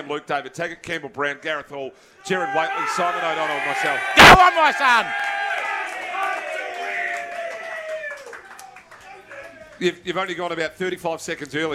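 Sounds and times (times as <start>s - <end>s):
speech: 0.0s - 5.3s, 9.8s - 11.7s
crowd cheering: 2.2s - 10.0s
scattered claps: 5.2s - 10.6s.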